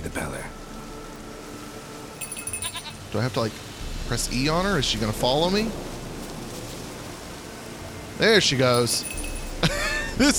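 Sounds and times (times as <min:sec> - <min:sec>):
goat bleating: 0:02.6 - 0:03.0
speech: 0:03.1 - 0:05.9, 0:08.2 - 0:09.3, 0:10.2 - 0:10.3
laughter: 0:09.6 - 0:10.3.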